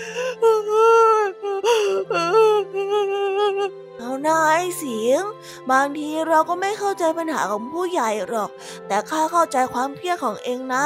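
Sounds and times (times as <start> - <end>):
child crying: 0.0 - 3.7
speech: 4.2 - 10.8.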